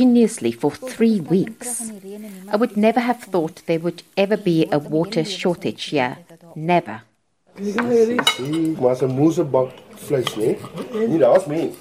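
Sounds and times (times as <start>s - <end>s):
speech: 0.0s - 11.7s
dishes and cutlery clinking during lunch: 7.7s - 11.7s.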